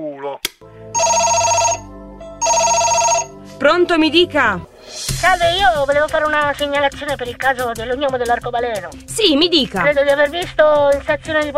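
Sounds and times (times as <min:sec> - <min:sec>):
telephone ringing with electronic trill: 0:00.9 - 0:03.4
speech: 0:03.6 - 0:11.5.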